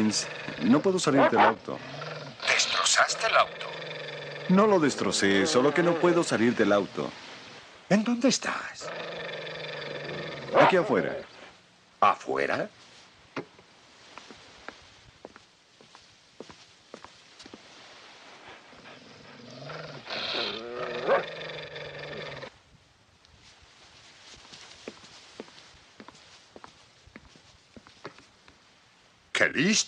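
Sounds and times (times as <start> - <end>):
speech: 0.0 - 2.0, 3.0 - 7.3, 7.9 - 9.2, 10.5 - 11.3, 12.0 - 12.8, 29.6 - 29.8
dogs growling and snarling: 0.0 - 5.8, 8.8 - 11.3, 18.5 - 22.5.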